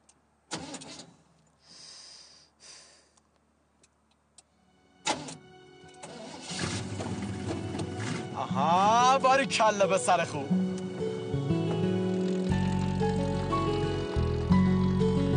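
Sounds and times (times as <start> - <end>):
engine cranking and starting: 0.5 - 1.3, 5.0 - 8.4, 10.7 - 15.3
speech: 8.6 - 10.6.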